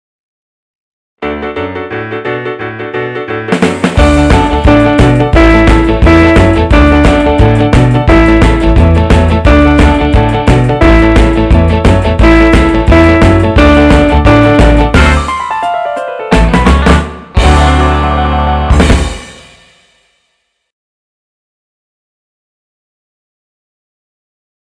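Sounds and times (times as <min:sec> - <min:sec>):
two-note jive music: 0:01.2 - 0:19.7.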